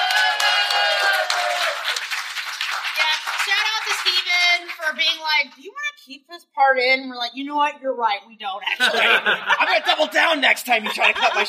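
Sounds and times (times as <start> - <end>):
live audience clapping: 0.0 - 5.4
speech: 4.9 - 11.4
laughter: 8.6 - 11.4.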